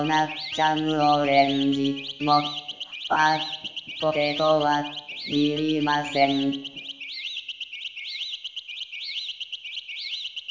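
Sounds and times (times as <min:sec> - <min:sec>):
speech: 0:00.0 - 0:06.7
electronic chiptune bleeping with a high warbling synth figure: 0:00.0 - 0:06.9.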